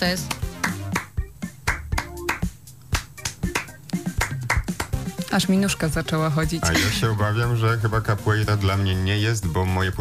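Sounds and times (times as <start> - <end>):
speech: 0.0 - 0.4, 5.3 - 10.0
rhythmic hand claps: 0.2 - 5.4.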